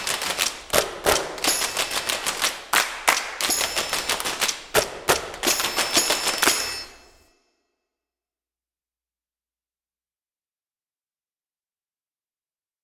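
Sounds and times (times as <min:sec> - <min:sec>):
child playing percussion: 0:00.0 - 0:07.4.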